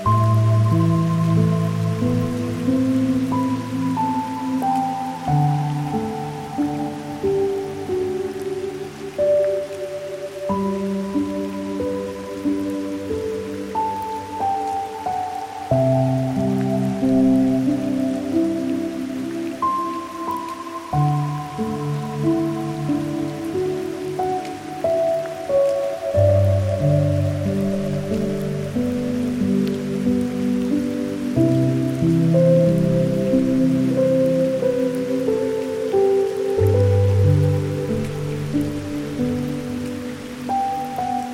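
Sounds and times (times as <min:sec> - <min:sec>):
piano: 0:00.0 - 0:41.3
rain: 0:00.0 - 0:41.3.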